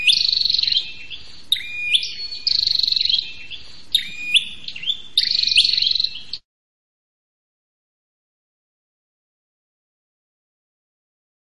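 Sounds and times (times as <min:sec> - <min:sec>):
prinia dry trill: 0:00.0 - 0:06.4.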